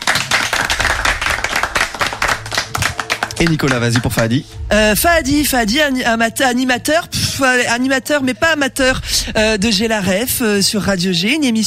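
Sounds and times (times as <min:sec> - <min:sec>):
audience applauding: 0:00.0 - 0:04.4
speech: 0:03.4 - 0:11.6.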